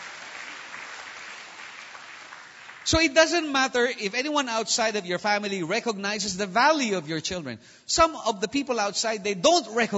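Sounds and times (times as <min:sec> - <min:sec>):
church congregation applauding: 0:00.0 - 0:03.6
speech: 0:02.9 - 0:09.9.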